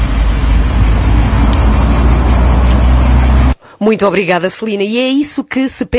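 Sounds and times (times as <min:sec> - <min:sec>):
cicadas singing: 0:00.0 - 0:03.6
speech: 0:03.8 - 0:05.9.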